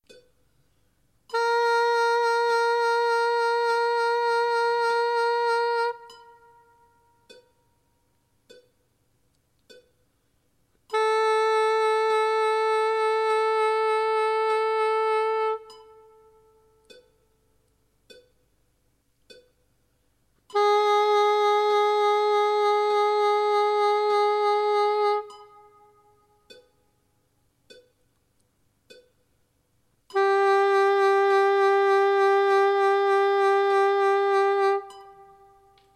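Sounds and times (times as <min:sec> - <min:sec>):
vibrato in quadruplets: 0:01.3 - 0:07.7, 0:10.9 - 0:18.6, 0:20.5 - 0:27.0, 0:30.0 - 0:35.9.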